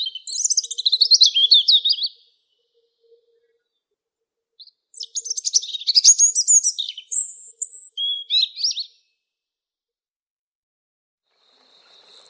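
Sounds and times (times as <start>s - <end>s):
European robin singing tinkling twittering phrases and whistles: 0.0s - 3.8s, 4.6s - 9.2s, 11.5s - 12.2s.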